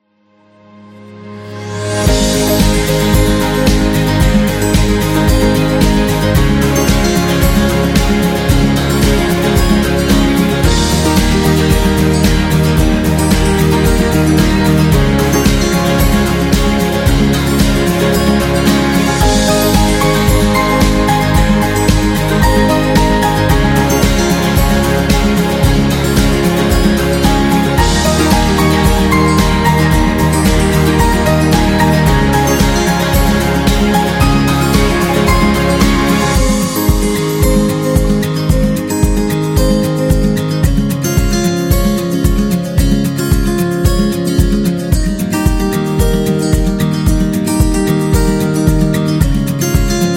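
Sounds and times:
birthday intro music: 0.4 - 50.1.

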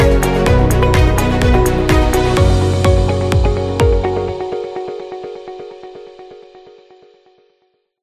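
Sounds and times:
real estate commercial: 0.0 - 5.8.

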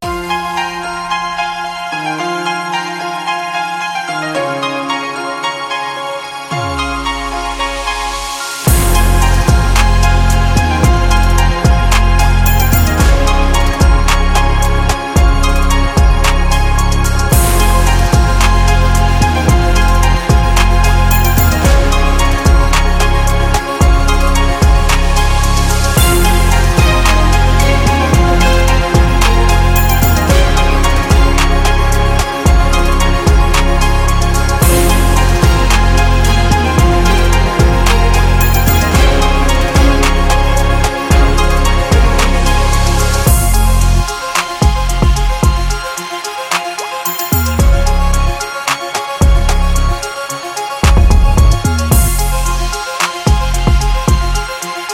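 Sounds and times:
dramatic trap music: 0.0 - 54.9.

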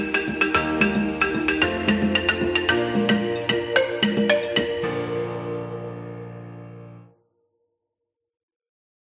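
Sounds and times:
happy African music: 0.0 - 6.1.

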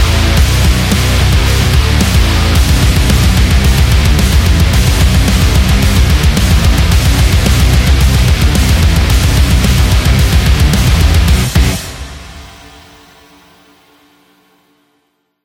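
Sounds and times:
motorcycle: 0.1 - 11.8.

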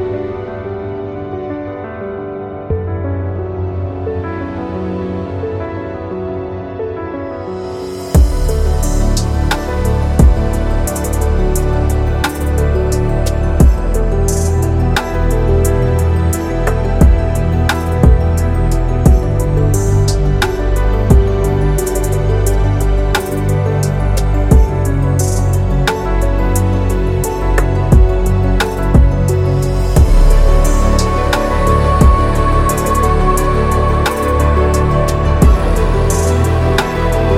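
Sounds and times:
slow ambient background music: 0.0 - 37.3.

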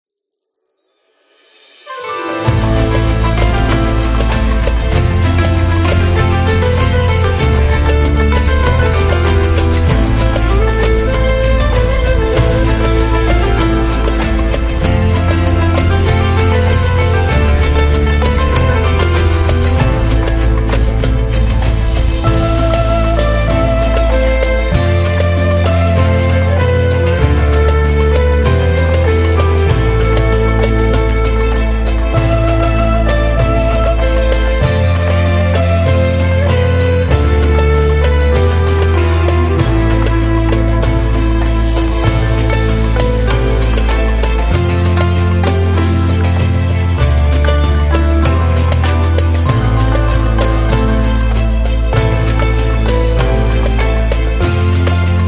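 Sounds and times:
sad Arabic music: 1.9 - 55.2.

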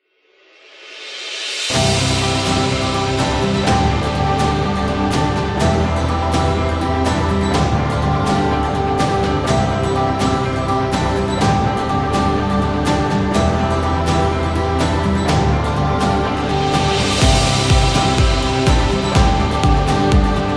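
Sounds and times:
motivational music: 1.7 - 20.5.

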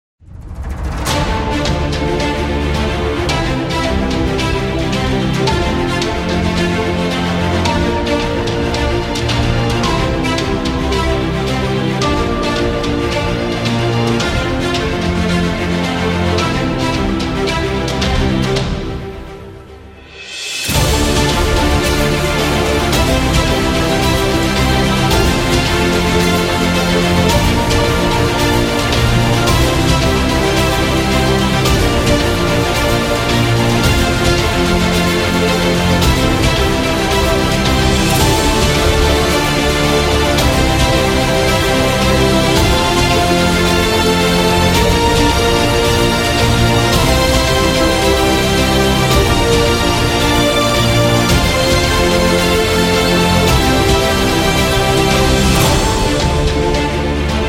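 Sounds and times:
cinematic trailer music: 0.2 - 57.4.

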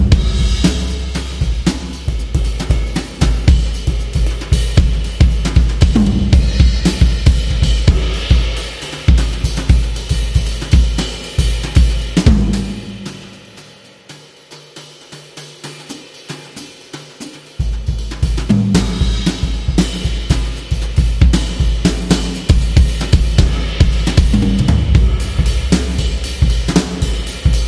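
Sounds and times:
jazz drum solo: 0.0 - 27.6.

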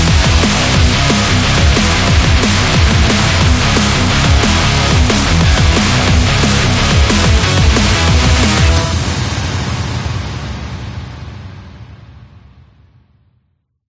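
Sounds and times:
metallic epic sound: 0.0 - 10.2.

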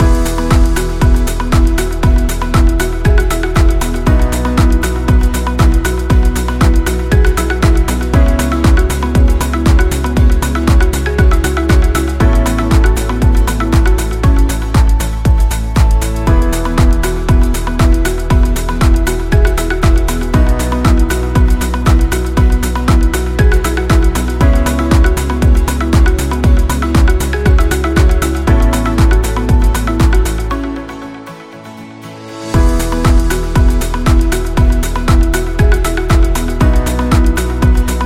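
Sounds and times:
positive corporate music loop: 0.0 - 38.0.

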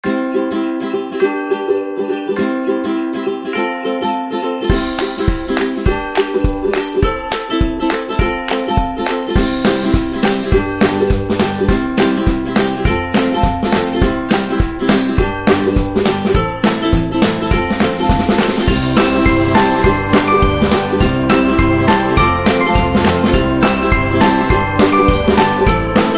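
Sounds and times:
christmas music: 0.0 - 26.1.

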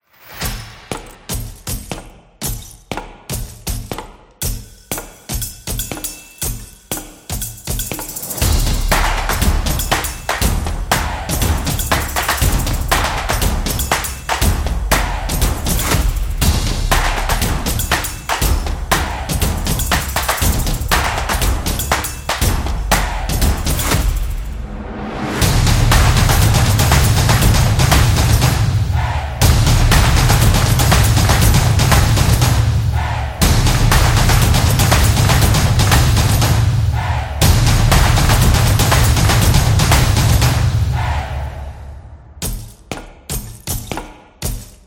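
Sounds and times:
soccer drums: 0.4 - 24.5, 25.4 - 41.4, 42.4 - 44.8.

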